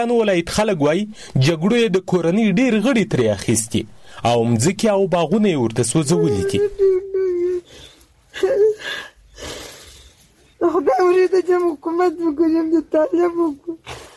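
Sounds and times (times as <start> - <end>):
speech: 0.0 - 7.0, 8.4 - 9.1, 10.6 - 14.0
woman sobbing and wailing over her two sons killed in fighting: 6.0 - 9.9, 10.6 - 14.1.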